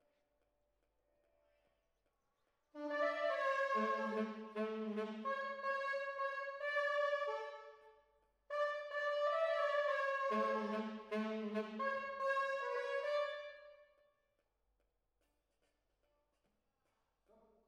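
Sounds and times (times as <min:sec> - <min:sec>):
horns playing: 0:02.8 - 0:07.8, 0:08.5 - 0:13.7.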